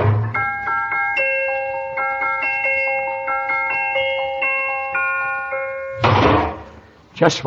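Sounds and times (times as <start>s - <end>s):
musical garbage can playing a tinkling tune when its lid is lifted: 0.3s - 6.0s.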